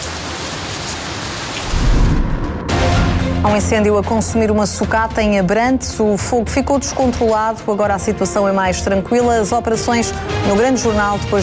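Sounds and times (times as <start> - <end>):
heavy rain in Vila Nova de Gaia: 0.0 - 3.4
speech: 3.4 - 11.4.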